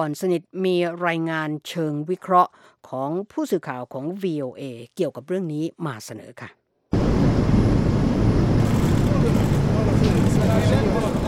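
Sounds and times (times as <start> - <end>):
speech: 0.0 - 6.6
airplane engine: 6.9 - 11.2.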